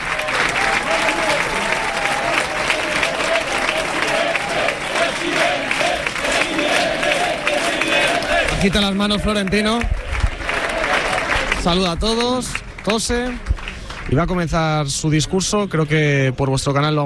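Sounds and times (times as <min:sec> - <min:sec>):
faint murmur of voices: 0:00.0 - 0:11.7
scattered cheers: 0:00.0 - 0:11.7
large crowd applauding a speaker at campaign event: 0:00.0 - 0:15.9
speech: 0:08.6 - 0:10.0, 0:11.6 - 0:13.5, 0:14.1 - 0:17.0.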